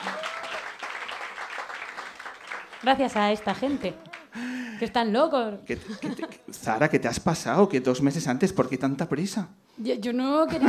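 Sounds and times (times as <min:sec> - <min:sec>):
audience applause: 0:00.0 - 0:04.7
speech: 0:02.8 - 0:10.6
laughter: 0:03.5 - 0:04.5, 0:05.7 - 0:06.5.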